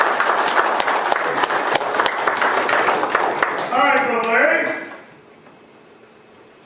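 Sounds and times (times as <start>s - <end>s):
church congregation applauding: 0.0s - 5.1s.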